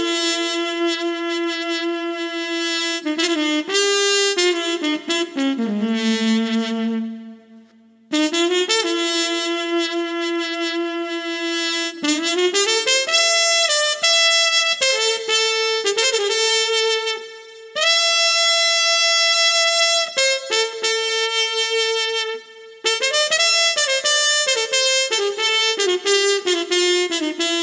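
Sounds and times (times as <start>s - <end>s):
muted trumpet chill street music at 90 BPM: 0.0s - 27.6s.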